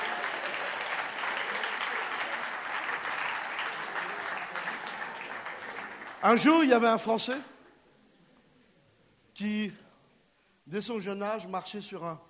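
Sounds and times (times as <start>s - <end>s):
audience applause: 0.0s - 6.8s
speech: 6.2s - 7.5s, 9.4s - 9.8s, 10.7s - 12.2s.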